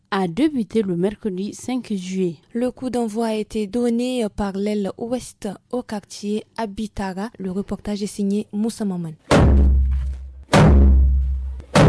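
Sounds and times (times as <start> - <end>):
speech: 0.1 - 9.8
drum beats opening the Bianou cultural festival in Agadez: 9.3 - 11.8.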